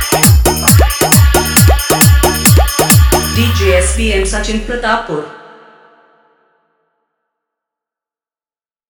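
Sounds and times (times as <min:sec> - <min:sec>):
Bhojpuri DJ song: 0:00.0 - 0:05.6.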